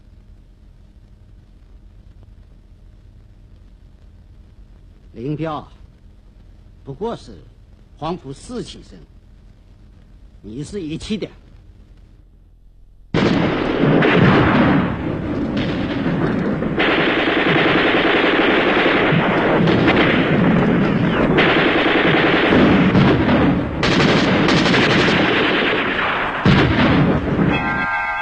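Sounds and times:
speech: 5.2 - 5.8, 6.9 - 9.1, 10.4 - 11.4
rapid machine-gun fire in fighting at the old city of Jinzhou, China: 13.1 - 27.6
heavy booming artillery blasts in fighting at the old city of Jinzhou, China: 13.1 - 28.1.

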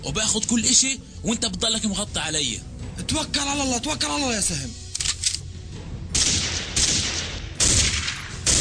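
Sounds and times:
speech: 0.0 - 4.8
gunfire: 6.1 - 8.5.

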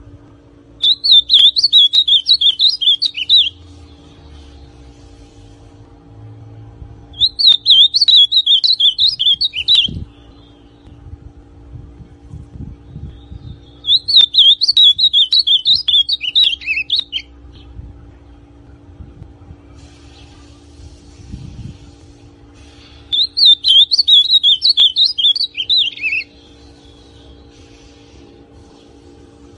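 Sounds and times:
ultramarine grosbeak song: 0.8 - 4.6, 7.1 - 11.0, 12.9 - 17.7, 22.6 - 27.9.

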